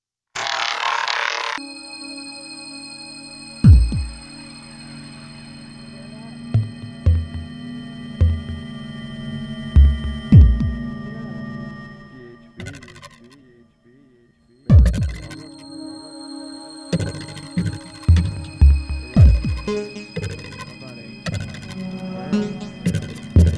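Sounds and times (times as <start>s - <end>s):
instrumental music: 1.6s - 23.5s.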